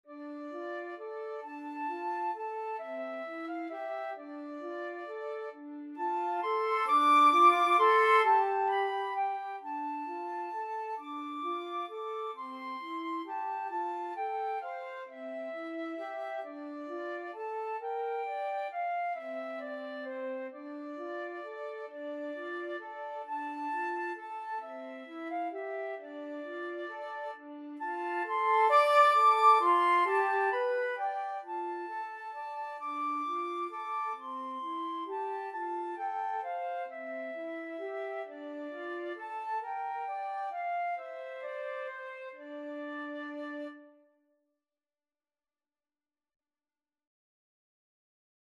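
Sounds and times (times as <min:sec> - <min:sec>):
flute duet: 0:00.0 - 0:44.2.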